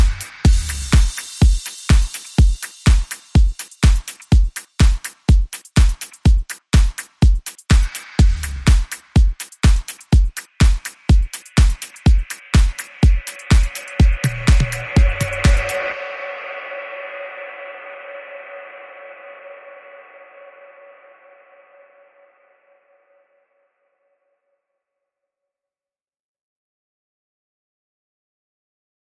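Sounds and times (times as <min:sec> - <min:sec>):
music beat: 0:00.0 - 0:17.3.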